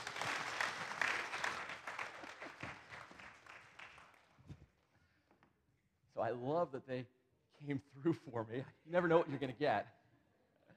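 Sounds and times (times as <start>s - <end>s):
audience applause: 0.0s - 4.4s
speech: 6.2s - 10.0s.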